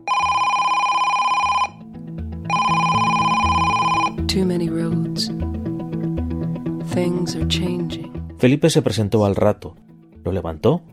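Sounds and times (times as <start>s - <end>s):
mobile phone ringing with a bright buzzy electronic ringtone: 0.0s - 1.8s, 2.4s - 4.2s
speech: 4.4s - 5.7s, 6.9s - 10.9s.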